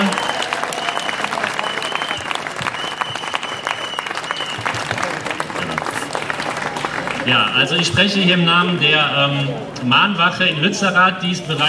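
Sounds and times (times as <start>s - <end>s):
audience applause: 0.0s - 8.0s
speech: 7.3s - 11.6s.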